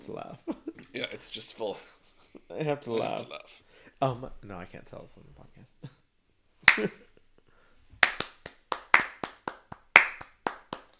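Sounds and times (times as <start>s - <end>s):
speech: 0.1s - 5.9s, 6.8s - 7.0s
hand clapping: 6.6s - 7.0s, 8.0s - 10.9s.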